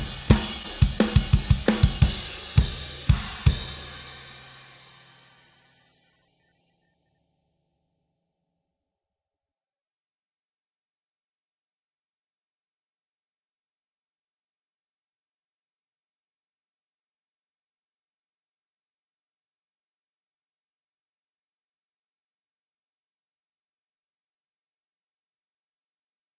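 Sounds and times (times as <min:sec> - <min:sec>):
drums: 0:00.0 - 0:06.5.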